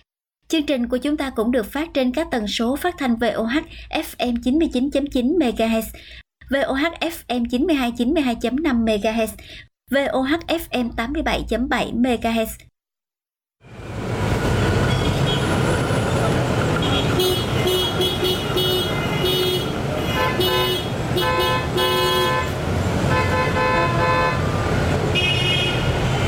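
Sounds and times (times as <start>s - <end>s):
speech: 0.5s - 12.7s
steady roar of street traffic engines: 13.7s - 26.2s
car horns honking in busy street traffic: 14.6s - 26.2s.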